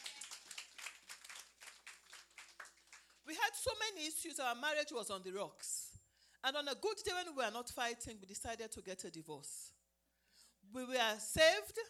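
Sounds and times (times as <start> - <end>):
audience clapping: 0.0 - 3.3
speech: 3.6 - 5.8, 6.4 - 9.6, 10.7 - 11.8.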